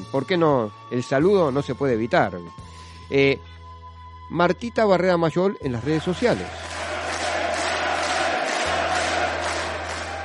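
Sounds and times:
speech: 0.1s - 3.5s, 4.3s - 6.6s
crowd applauding and cheering: 5.8s - 10.2s.

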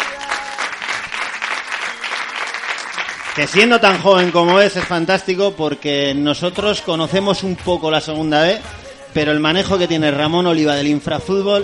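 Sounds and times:
audience applause: 0.0s - 5.0s
speech: 3.4s - 11.6s.

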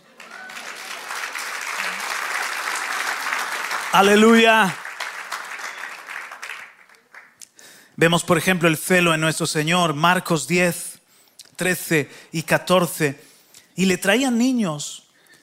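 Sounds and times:
audience applause: 0.0s - 7.4s
speech: 3.9s - 4.8s, 8.0s - 10.9s, 11.6s - 13.2s, 13.8s - 15.0s.

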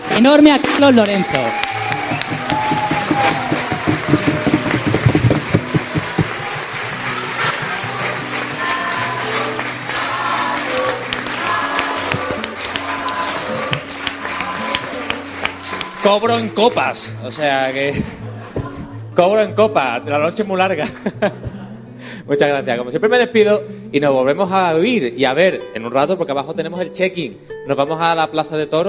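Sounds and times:
live audience applauding loudly: 0.0s - 18.1s
speech: 0.2s - 1.6s, 16.1s - 18.1s, 19.2s - 21.5s, 22.3s - 28.8s
laughter: 17.8s - 19.1s, 20.8s - 21.8s.

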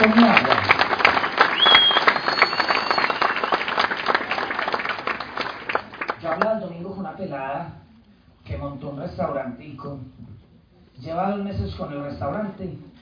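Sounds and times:
audience applause: 0.0s - 6.4s
whistles and cheers: 1.3s - 4.0s
speech: 9.1s - 12.9s.

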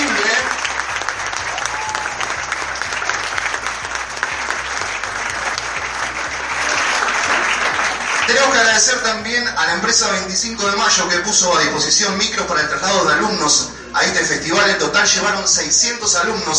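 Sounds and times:
audience applause: 0.0s - 9.3s
speech: 8.8s - 16.5s.

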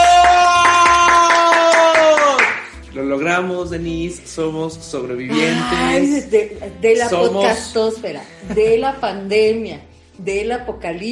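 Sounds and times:
rhythmic hand clapping: 0.0s - 3.0s
speech: 3.4s - 11.1s
sustained bright tone: 5.2s - 7.8s.

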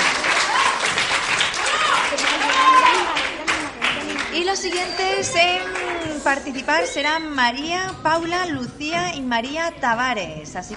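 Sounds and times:
applause: 0.0s - 6.1s
speech: 5.2s - 10.7s.

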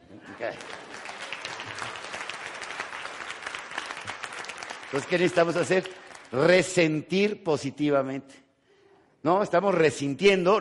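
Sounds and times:
audience applause: 0.3s - 6.5s
speech: 0.4s - 1.0s, 4.9s - 8.4s, 9.2s - 10.5s.

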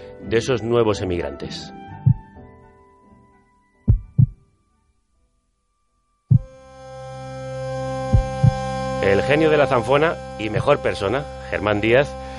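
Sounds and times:
speech: 0.2s - 1.8s, 9.0s - 12.3s
recorded heartbeats from 1933 cardiology discs: 2.0s - 2.3s, 3.9s - 4.4s, 6.3s - 6.6s, 8.1s - 8.6s
faint tonal hum: 3.9s - 12.3s.

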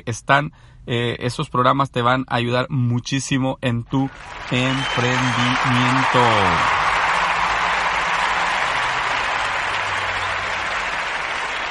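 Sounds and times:
speech: 0.0s - 6.8s
crowd applause: 4.1s - 11.6s.

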